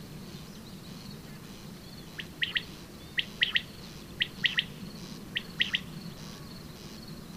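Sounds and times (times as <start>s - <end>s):
common quail: 2.2s - 4.7s, 5.3s - 5.9s.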